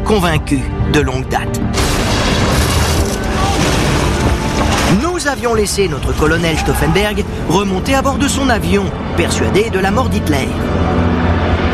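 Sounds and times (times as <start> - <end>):
speech: 0.1 - 1.6, 4.9 - 11.0
bomb explosion: 1.8 - 6.5.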